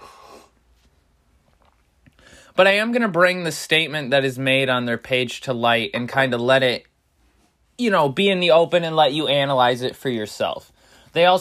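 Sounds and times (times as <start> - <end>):
person sipping coffee: 1.5 - 2.2
speech: 2.6 - 6.9, 7.8 - 11.4.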